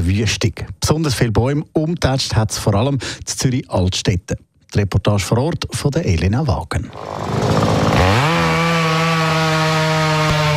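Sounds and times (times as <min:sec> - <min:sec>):
speech: 0:00.0 - 0:08.3
chainsaw cutting fallen tree trunks: 0:06.9 - 0:10.5.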